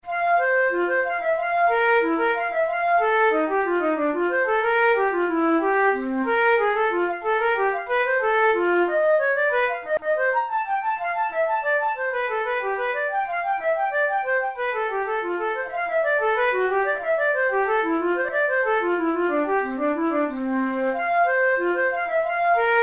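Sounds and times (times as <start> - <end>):
solo flute studies: 0.0 - 22.8.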